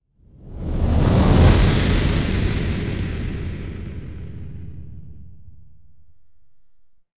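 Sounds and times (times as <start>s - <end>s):
electric fire flame whoosh: 0.3s - 5.6s.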